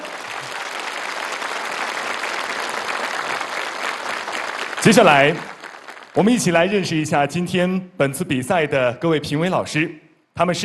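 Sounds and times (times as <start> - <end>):
warm applause from audience: 0.0 - 6.5
speech: 4.8 - 5.5, 6.2 - 10.6.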